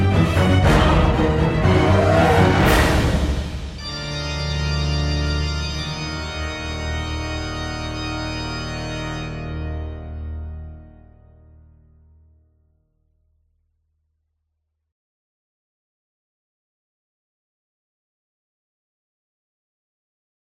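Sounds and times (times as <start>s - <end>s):
music: 0.0s - 14.5s.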